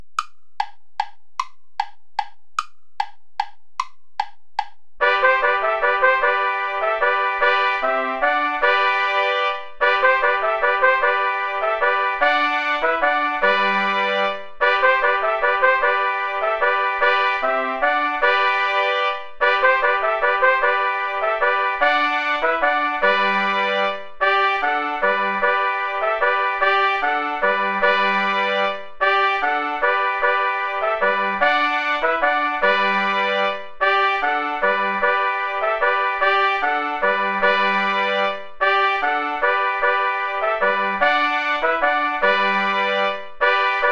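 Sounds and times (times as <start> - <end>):
instrumental play-along backing track without trumpet: 0.0 - 43.9.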